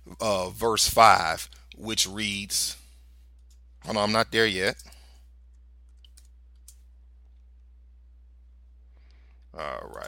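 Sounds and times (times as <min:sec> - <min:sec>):
low electrical hum: 0:00.0 - 0:10.0
speech: 0:00.1 - 0:02.8, 0:03.8 - 0:05.0, 0:09.6 - 0:10.0
computer mouse or keyboard clicks: 0:04.7 - 0:06.9.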